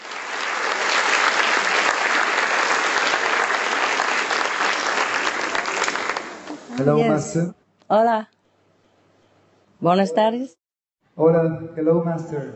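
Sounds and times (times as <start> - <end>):
audience round of applause: 0.0 - 6.9
speech: 6.8 - 8.4, 9.8 - 10.6, 11.2 - 12.5.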